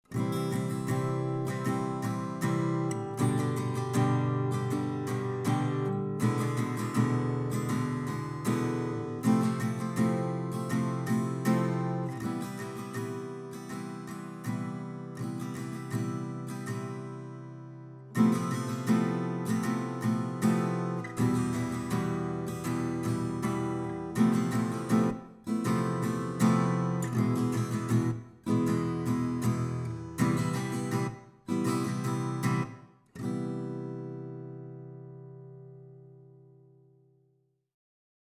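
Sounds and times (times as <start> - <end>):
glam style strumming: 0.1 - 36.4.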